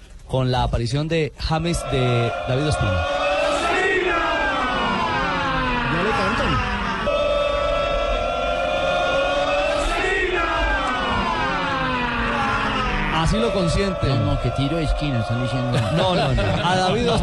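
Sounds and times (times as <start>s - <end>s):
speech: 0.3s - 3.2s, 13.2s - 17.2s
stadium crowd shouting in unison: 1.6s - 17.2s
laughter: 10.9s - 17.2s.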